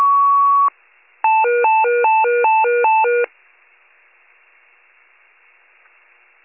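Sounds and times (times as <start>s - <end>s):
fire pager alert: 0.2s - 3.3s.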